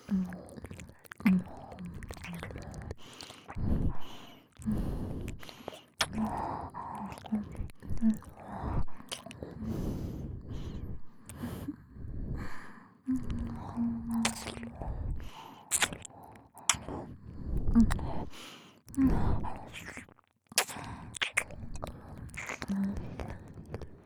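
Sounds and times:
double nose breathing: 0.0s - 7.6s, 8.4s - 20.0s
ear licking: 0.0s - 9.6s, 13.1s - 17.0s, 19.6s - 24.0s.

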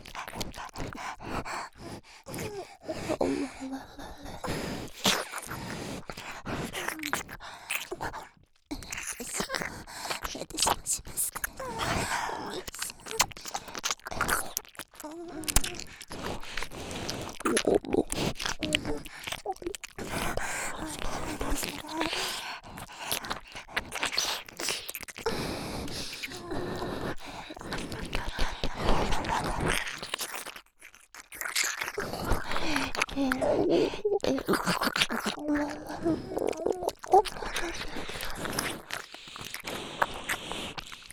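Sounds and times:
ear licking: 0.0s - 41.1s
nose breathing: 0.3s - 7.9s, 15.1s - 30.0s, 32.0s - 41.1s.

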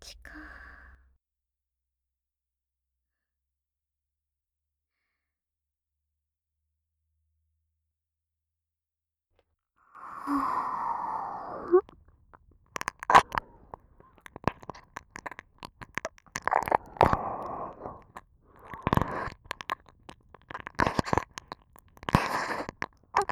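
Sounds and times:
sweet ear licking sounds: 10.0s - 23.2s.

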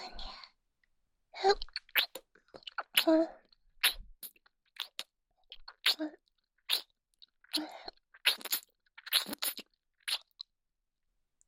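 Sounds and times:
oral sex sounds: 1.4s - 10.5s
nipple licking: 1.6s - 3.2s, 3.8s - 10.5s
ear licking: 3.8s - 6.0s, 7.4s - 10.4s.

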